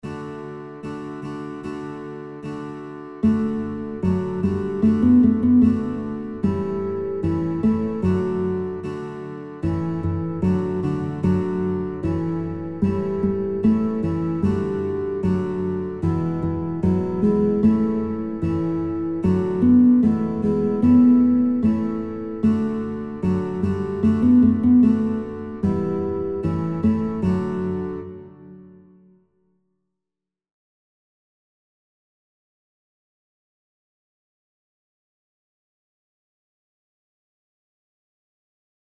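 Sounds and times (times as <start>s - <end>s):
guitar playing children's songs: 0.0s - 29.2s.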